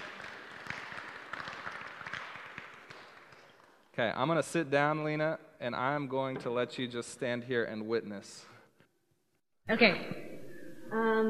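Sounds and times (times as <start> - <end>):
audience applause: 0.0 - 3.8
speech: 4.0 - 8.5, 9.7 - 10.3, 10.9 - 11.2.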